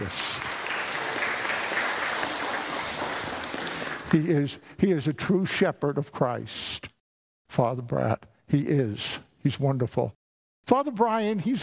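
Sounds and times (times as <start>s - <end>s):
audience applause: 0.0s - 4.5s
speech: 4.1s - 6.9s, 7.6s - 11.6s.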